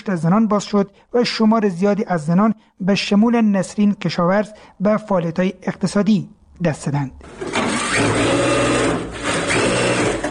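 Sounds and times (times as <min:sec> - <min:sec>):
speech: 0:00.0 - 0:08.5
sewing machine running in a tailoring workshop: 0:07.2 - 0:10.2.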